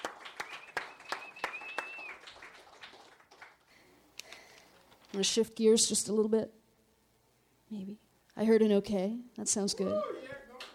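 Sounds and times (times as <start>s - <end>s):
audience scattered hand claps: 0.0s - 3.7s
sustained whistle: 0.4s - 2.2s
speech: 5.2s - 6.6s, 7.7s - 10.4s.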